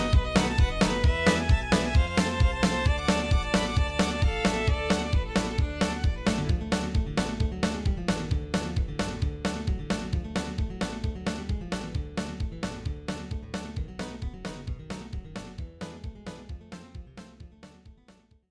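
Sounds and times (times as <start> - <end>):
bluegrass fiddle playing: 0.0 - 7.4
bluegrass banjo playing: 0.0 - 17.4.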